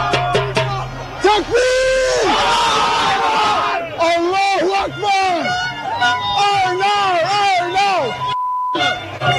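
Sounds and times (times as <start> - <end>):
crowd celebrating in the streets of Astoria, Queens, New York: 0.0 - 9.3
electronic beep: 8.2 - 9.0.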